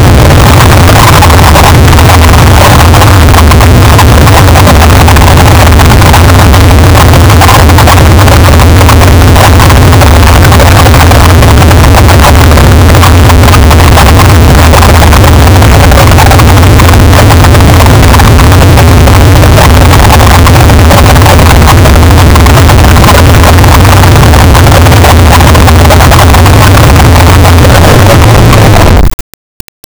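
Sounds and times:
volcano boiling: 0.0 - 29.0.

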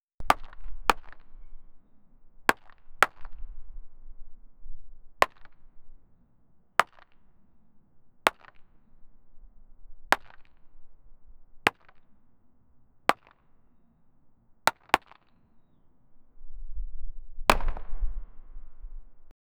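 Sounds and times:
tennis balls falling: 0.2 - 4.3, 5.0 - 15.8.

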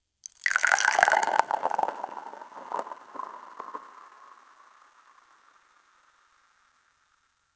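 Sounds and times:
espresso pouring over ice: 0.2 - 4.8.

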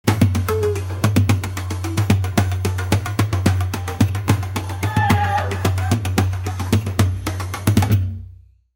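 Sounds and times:
tiki Hawaiian Polynesian tribal music: 0.0 - 8.4.

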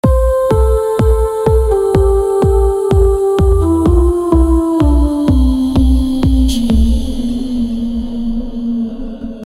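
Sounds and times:
sophisticated deep house music: 0.0 - 8.1.

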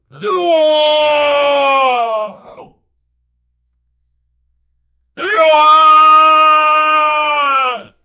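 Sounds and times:
worried man shouting: 0.2 - 2.7, 5.2 - 8.0.

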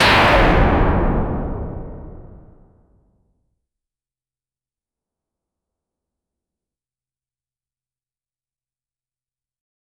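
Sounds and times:
AI-generated hit sound: 0.0 - 2.8.

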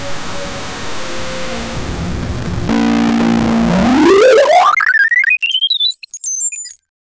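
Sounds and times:
retro television static distortion: 0.0 - 5.6.

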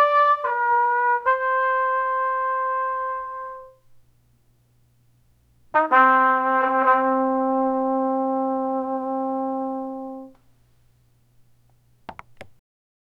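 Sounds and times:
trumpet playing a single note: 0.0 - 3.8, 5.7 - 10.4.

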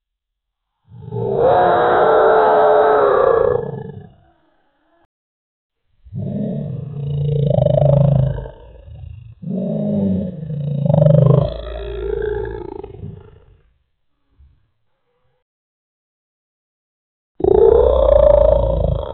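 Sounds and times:
dinosaur roaring: 1.0 - 4.5, 6.2 - 13.6, 17.4 - 19.1.

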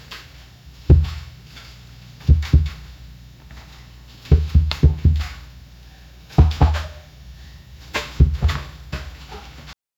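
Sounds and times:
quick dusty paw thuds: 0.9 - 1.3, 2.3 - 2.9, 4.3 - 5.4, 8.2 - 8.8.

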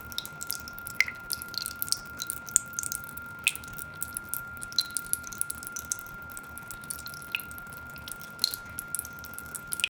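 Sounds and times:
liquid: 0.0 - 9.9.

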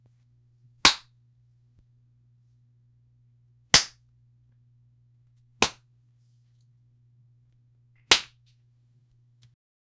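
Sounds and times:
face being slapped: 0.8 - 1.1, 3.7 - 4.0, 5.6 - 5.8, 8.0 - 8.4.

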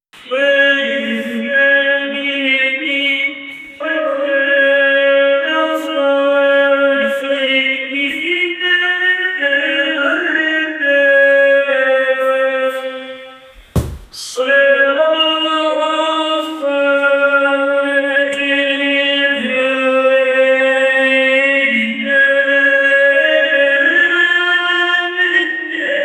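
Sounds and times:
sasquatch creature singing opera: 0.2 - 13.4, 14.1 - 26.0.

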